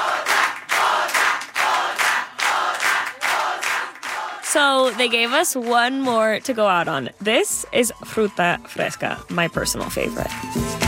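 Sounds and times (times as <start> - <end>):
crowd cheering after a live performance: 0.0 - 7.1
speech: 4.5 - 10.8.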